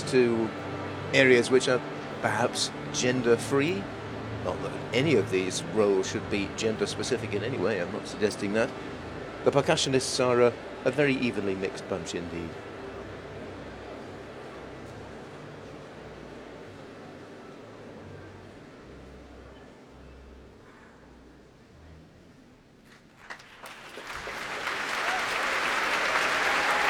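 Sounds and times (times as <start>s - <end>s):
speech: 0.1s - 12.7s
applause for orchestra leader: 22.9s - 26.8s
roaring cheers for orchestra leader: 23.9s - 26.8s.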